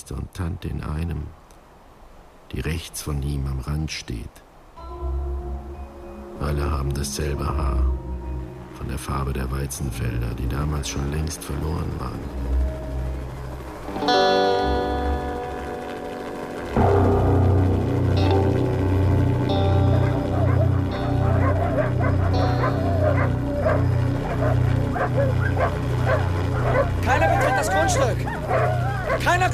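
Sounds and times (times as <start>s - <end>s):
speech: 0.1s - 1.4s, 2.5s - 5.2s, 6.4s - 8.1s, 8.8s - 12.8s
low droning tone: 4.8s - 29.5s
dogs barking: 19.5s - 29.5s.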